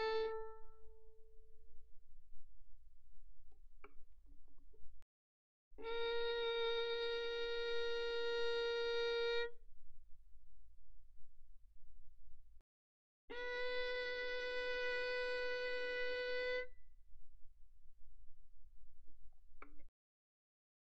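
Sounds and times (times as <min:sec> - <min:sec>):
violin bowed mezzo forte on G string: 0:00.0 - 0:01.2, 0:05.8 - 0:09.6, 0:13.3 - 0:16.7.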